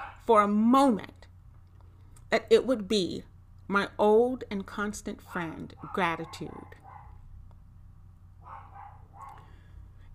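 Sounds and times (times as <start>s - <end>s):
puppy barking: 0.0s - 0.3s, 5.3s - 7.2s, 8.4s - 9.6s
speech: 0.3s - 1.2s, 2.3s - 6.8s.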